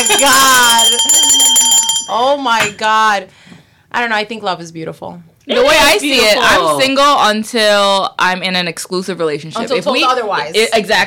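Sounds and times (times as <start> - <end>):
bell ringing: 0.0 - 2.8
speech: 0.2 - 0.7, 2.1 - 11.0.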